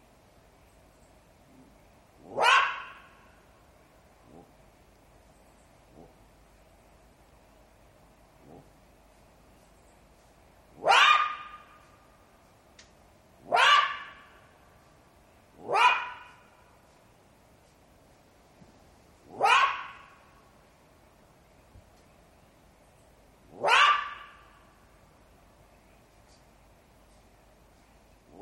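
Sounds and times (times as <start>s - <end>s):
jackal yelping: 2.2s - 3.2s, 10.8s - 11.8s, 13.4s - 14.4s, 15.6s - 16.4s, 19.3s - 20.2s, 23.5s - 24.6s.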